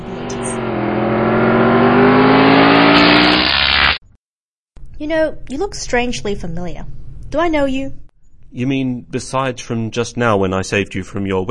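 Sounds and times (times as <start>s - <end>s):
DeLorean car engine accelerating and driving off: 0.0s - 4.0s
speech: 5.1s - 11.4s.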